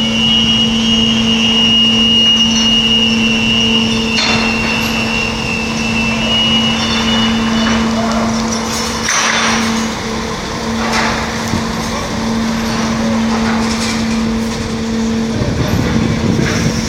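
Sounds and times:
lorry engine drone at Dover ferry terminal: 0.0s - 16.8s
rumbling traffic noise at Dover Ferry Terminal: 0.0s - 16.8s
clanks and knocks of lorries loading onto a ferry: 4.1s - 5.3s, 6.6s - 16.8s.

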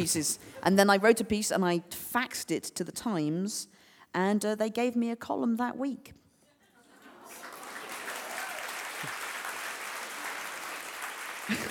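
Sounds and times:
speech: 0.0s - 6.2s
audience applause: 7.2s - 11.6s.

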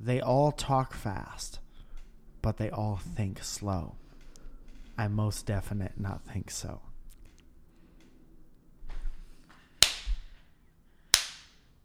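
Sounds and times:
speech: 0.0s - 1.6s, 2.4s - 4.0s, 5.0s - 6.9s
faint low rumble: 0.0s - 10.9s
sharp hand claps: 9.8s - 10.3s, 11.1s - 11.7s.

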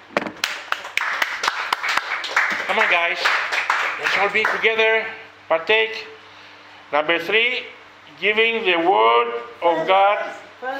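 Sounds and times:
audience clapping: 0.4s - 4.8s
speech: 2.7s - 6.1s, 6.9s - 10.7s.

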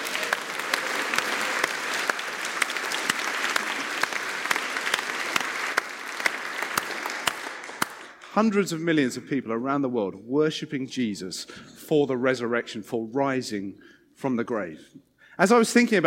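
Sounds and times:
crowd applause: 0.0s - 8.2s
speech: 8.4s - 16.0s.

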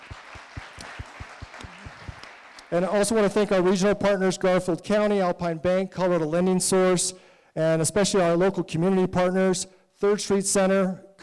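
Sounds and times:
crowd clapping: 0.0s - 3.6s
speech: 2.7s - 11.2s.

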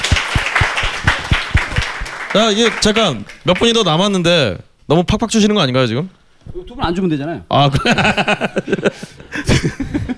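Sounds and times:
applause: 0.0s - 3.8s
speech: 2.3s - 9.8s
laughter: 7.7s - 10.1s.

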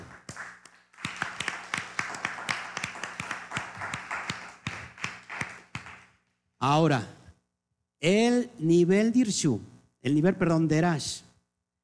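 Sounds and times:
small group clapping: 0.0s - 6.2s
speech: 6.6s - 7.2s, 8.0s - 11.3s.

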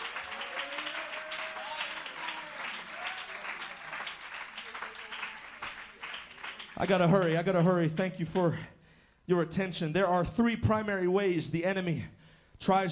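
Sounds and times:
audience clapping: 0.0s - 7.4s
speech: 6.8s - 12.9s.

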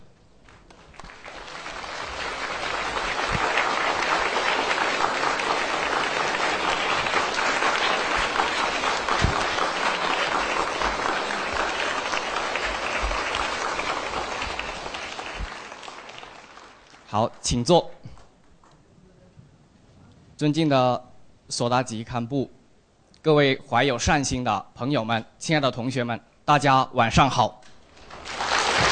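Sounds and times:
audience applause: 0.5s - 17.2s, 27.9s - 28.8s
speech: 17.4s - 17.9s, 20.4s - 22.6s, 23.2s - 27.6s.

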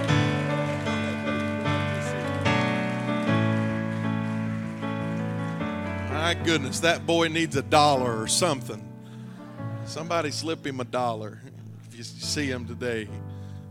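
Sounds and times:
audience applause: 0.0s - 8.3s
sustained organ-like chords: 0.0s - 13.6s
speech: 6.3s - 8.9s, 9.9s - 13.3s.

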